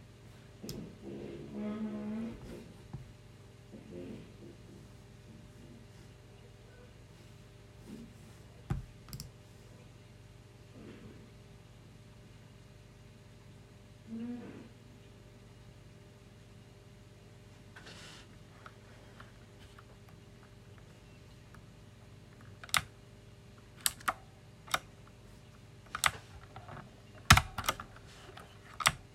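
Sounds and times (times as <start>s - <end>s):
steady low hum: 0.0s - 29.1s
mechanical keyboard clicks: 22.6s - 22.9s, 23.8s - 24.9s, 25.9s - 26.2s, 27.2s - 27.9s, 28.8s - 29.0s.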